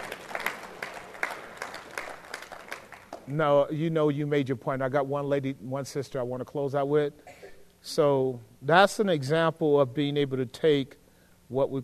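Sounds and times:
group applauding: 0.0 - 3.6
speech: 3.3 - 11.8.

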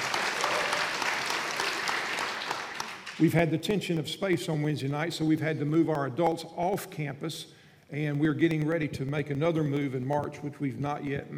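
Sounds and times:
audience applause: 0.0 - 3.3
speech: 3.2 - 11.3.

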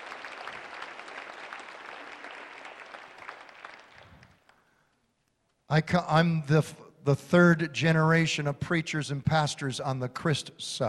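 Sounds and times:
audience applause: 0.0 - 4.6
speech: 5.7 - 10.8.

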